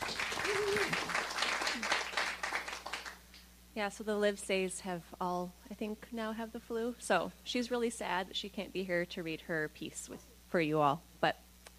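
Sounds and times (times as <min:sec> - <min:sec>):
audience applause welcoming a speaker at a morning gathering: 0:00.0 - 0:03.2
speech: 0:03.8 - 0:11.7.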